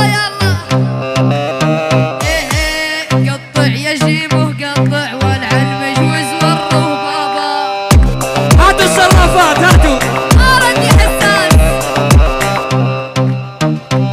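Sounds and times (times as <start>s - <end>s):
Arabic bass: 0.0s - 7.3s, 7.9s - 14.1s.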